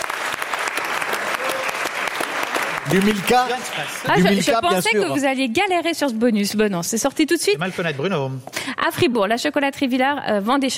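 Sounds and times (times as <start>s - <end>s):
audience applause: 0.0s - 4.9s
speech: 2.9s - 10.7s.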